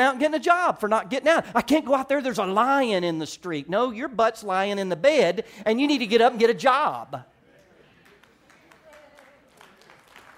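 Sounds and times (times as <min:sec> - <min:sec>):
speech: 0:00.0 - 0:07.3
audience clapping: 0:07.9 - 0:10.3.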